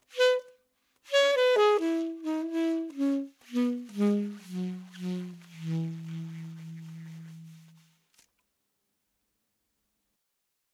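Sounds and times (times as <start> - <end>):
saxophone: 0.0 - 7.9.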